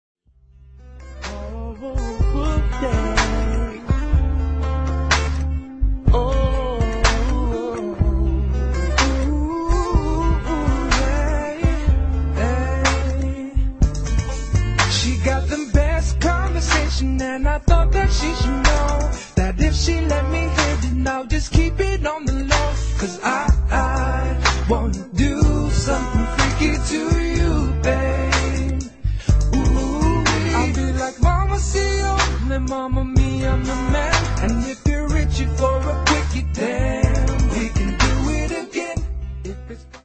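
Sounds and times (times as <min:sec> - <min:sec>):
slow jam music: 0:00.6 - 0:40.0.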